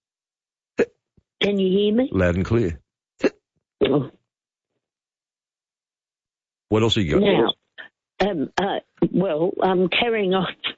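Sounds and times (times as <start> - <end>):
speech: 1.4 - 3.3, 3.9 - 4.2, 6.7 - 7.6, 8.2 - 10.7
hiccups: 3.2 - 4.2, 7.2 - 7.6.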